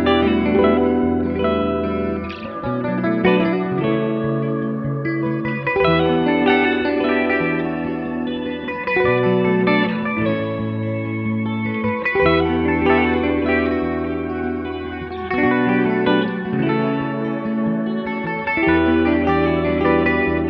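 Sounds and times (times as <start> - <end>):
guitar loops at 75 BPM in B minor: 0.0 - 20.4.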